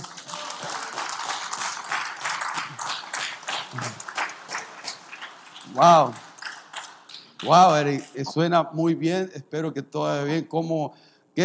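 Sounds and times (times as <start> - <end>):
church audience applauding: 0.0 - 8.2
speech: 5.7 - 6.2, 7.4 - 11.4.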